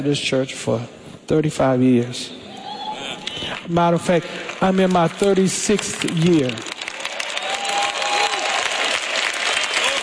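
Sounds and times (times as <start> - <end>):
speech: 0.0 - 2.4, 3.0 - 6.7
crowd clapping: 3.2 - 10.0.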